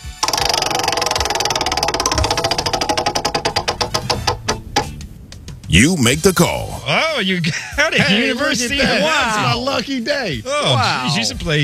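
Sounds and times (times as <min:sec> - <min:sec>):
prize wheel spinning: 0:00.0 - 0:05.0
speech: 0:05.7 - 0:11.6
laughter: 0:07.3 - 0:11.3.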